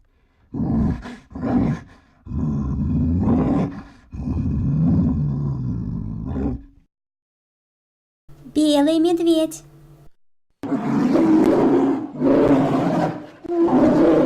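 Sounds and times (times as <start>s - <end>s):
brown bear roaring: 0.5s - 6.8s, 10.6s - 14.2s
speech: 8.6s - 9.7s.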